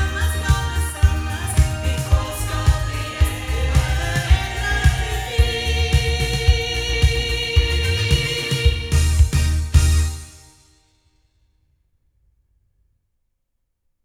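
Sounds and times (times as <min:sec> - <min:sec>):
loudspeakers: 0:00.0 - 0:10.0.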